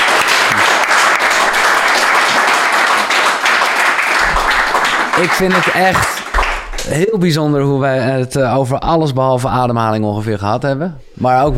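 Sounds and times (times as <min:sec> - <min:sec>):
audience applause: 0:00.0 - 0:07.1
speech: 0:05.2 - 0:06.2, 0:06.9 - 0:11.5.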